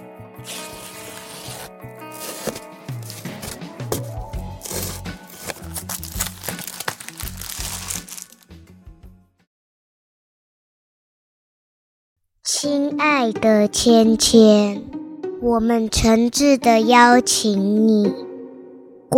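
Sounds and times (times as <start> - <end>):
music: 0.0 - 9.4, 12.5 - 19.1
speech: 0.4 - 0.6, 12.6 - 18.2
kraft paper torn and unwrapped from a parcel: 0.4 - 8.5.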